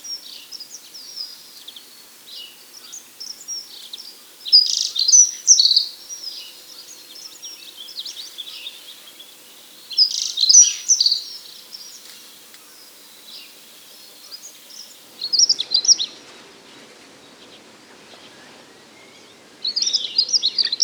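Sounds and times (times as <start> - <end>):
dunnock singing: 0.0 - 16.3, 18.3 - 20.8.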